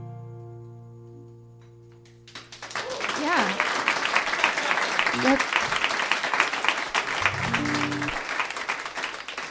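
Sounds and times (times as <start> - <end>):
audience applause: 2.3 - 9.4.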